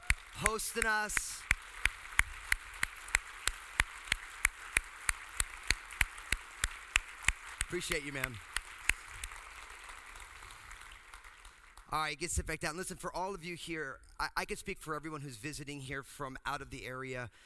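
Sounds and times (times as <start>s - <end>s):
applause: 0.0s - 12.2s
speech: 0.4s - 1.5s, 7.7s - 8.5s, 11.9s - 17.4s.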